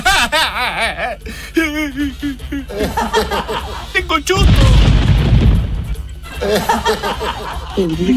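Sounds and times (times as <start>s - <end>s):
laughter: 0.0s - 4.0s, 6.0s - 8.1s
speech: 0.6s - 5.1s, 6.4s - 8.1s
thunder in Gualpense: 4.4s - 6.1s.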